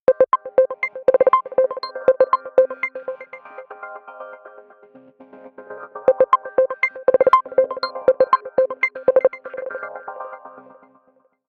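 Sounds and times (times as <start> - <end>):
ringtones: 0.1 - 3.4, 6.1 - 9.6.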